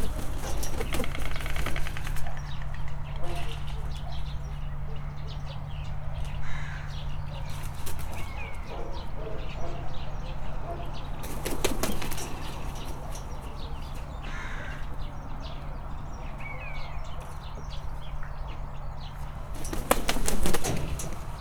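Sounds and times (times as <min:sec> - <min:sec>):
common raven trying its wings in Hortobágy National Park: 0:00.0 - 0:04.2, 0:07.4 - 0:08.7, 0:11.1 - 0:14.8, 0:19.2 - 0:21.3
other birds in Hortobágy National Park: 0:00.0 - 0:21.3.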